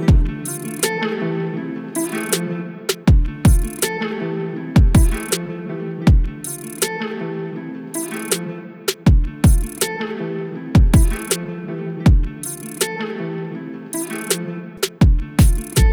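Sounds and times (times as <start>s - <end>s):
afrobeat instrumental: 0.1s - 1.1s, 2.0s - 4.1s, 4.7s - 5.5s, 6.1s - 7.2s, 8.0s - 10.1s, 10.8s - 11.5s, 12.1s - 13.2s, 13.9s - 15.9s.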